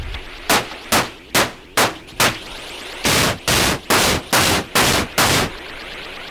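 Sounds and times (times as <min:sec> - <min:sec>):
layered percussion sound effects: 0:00.5 - 0:05.5.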